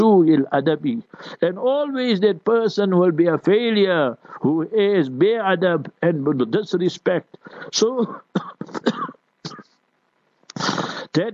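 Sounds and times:
speech: 0.1s - 9.7s, 10.6s - 11.3s
person coughing: 8.0s - 9.7s, 10.5s - 11.2s.

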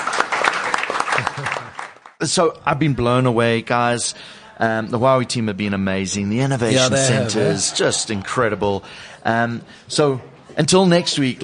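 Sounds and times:
audience applause: 0.0s - 2.2s
speech: 2.2s - 11.4s.

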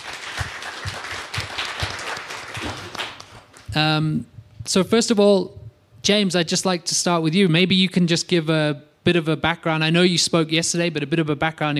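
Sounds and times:
audience applause: 0.0s - 3.7s
speech: 3.8s - 11.7s.

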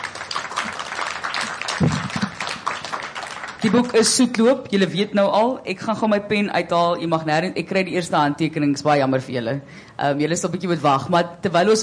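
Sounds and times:
audience applause: 0.0s - 4.1s
speech: 3.6s - 11.8s.

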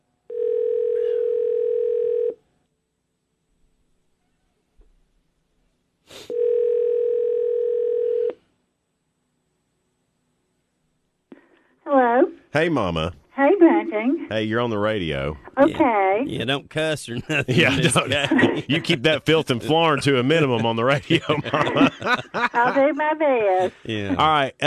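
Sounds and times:
telephone line ringing: 0.3s - 2.4s, 6.3s - 8.4s
speech: 12.5s - 13.2s, 14.0s - 24.6s
laughter: 16.4s - 24.6s.

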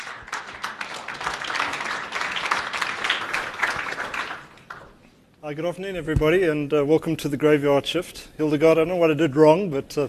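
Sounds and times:
crowd applauding: 0.0s - 5.0s
speech: 5.5s - 10.0s.

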